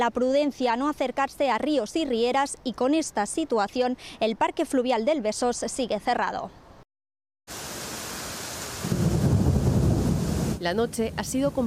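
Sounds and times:
speech: 0.0 - 6.6, 10.6 - 11.6
heavy rainstorm: 7.5 - 11.6.

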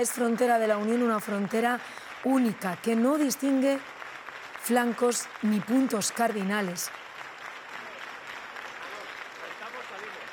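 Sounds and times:
speech: 0.0 - 4.0, 4.6 - 7.0
sustained applause from a large crowd: 0.0 - 10.3.

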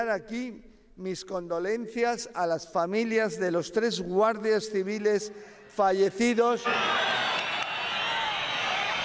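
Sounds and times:
speech: 0.0 - 7.2
crowd booing and whistling at Spanish interior minister Marlaska: 6.6 - 9.0.

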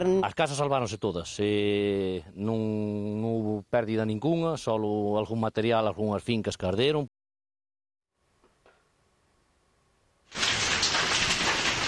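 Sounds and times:
speech: 0.0 - 7.2
heavy hail falling: 10.3 - 11.8.

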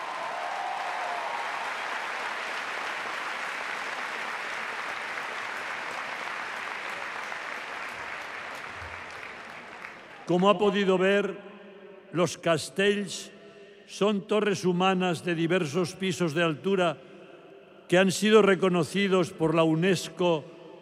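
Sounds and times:
large audience applause for human tower team: 0.0 - 10.4
speech: 10.3 - 11.5, 12.1 - 17.1, 17.9 - 20.5.

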